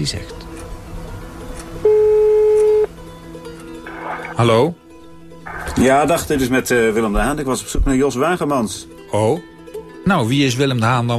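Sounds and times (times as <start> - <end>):
speech: 0.0 - 0.4, 4.3 - 4.8, 5.8 - 11.1
telephone call ringing on the line: 1.8 - 2.9.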